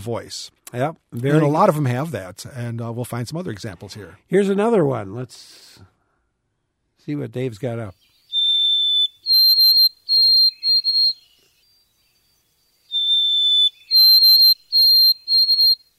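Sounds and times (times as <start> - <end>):
speech: 0.0 - 5.9, 7.1 - 8.0
white-throated sparrow singing whistled song: 7.9 - 15.9.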